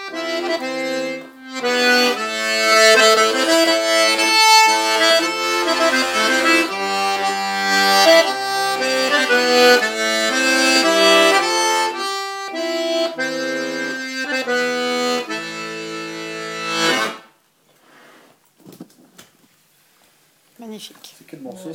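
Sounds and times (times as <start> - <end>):
mazurka: 0.0 - 17.3.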